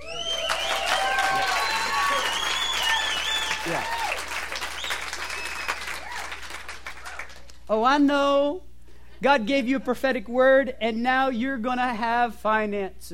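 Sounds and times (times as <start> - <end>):
crowd cheering: 0.0 - 7.5
audience clapping: 0.0 - 7.7
speech: 3.7 - 4.0, 7.7 - 13.1.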